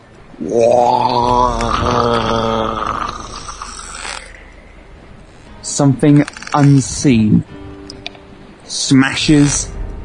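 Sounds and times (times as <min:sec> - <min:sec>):
speech: 0:00.4 - 0:02.9, 0:05.8 - 0:07.6, 0:08.7 - 0:09.8
gurgling monster roar: 0:00.4 - 0:04.6.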